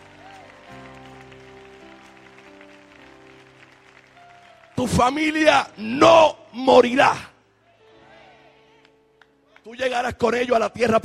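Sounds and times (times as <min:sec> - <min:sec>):
audience applauding: 0:00.0 - 0:05.8
speech: 0:04.8 - 0:07.3, 0:09.7 - 0:11.0.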